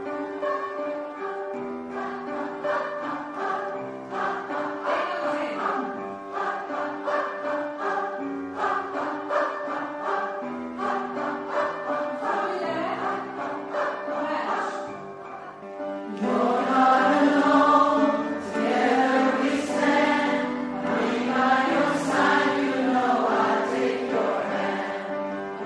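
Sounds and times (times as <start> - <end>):
tenor singing: 0.3 - 25.6.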